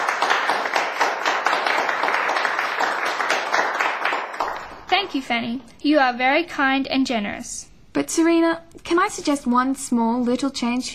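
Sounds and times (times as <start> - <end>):
class round of applause: 0.0 - 4.9
speech: 5.1 - 10.9.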